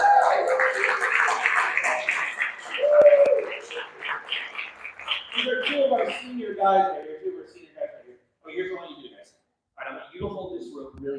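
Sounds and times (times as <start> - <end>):
people cheering and shouting: 0.0 - 3.8
crowd applauding: 0.0 - 6.5.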